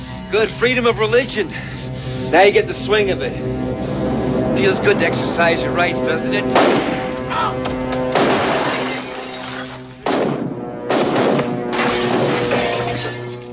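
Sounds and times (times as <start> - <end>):
humming tonal background: 0.0 - 13.5
speech: 0.3 - 3.9, 4.6 - 7.8
glass of a phone booth being smashed: 8.1 - 13.5.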